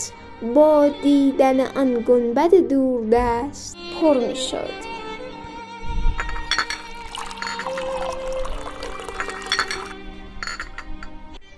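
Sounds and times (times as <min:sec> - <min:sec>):
speech: 0:00.0 - 0:04.8
tea being poured into glasses: 0:06.2 - 0:11.1
light clinks of glass: 0:06.2 - 0:11.2.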